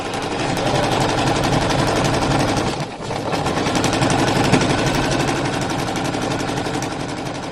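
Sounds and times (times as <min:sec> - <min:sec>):
sewing machine: 0:00.0 - 0:07.5.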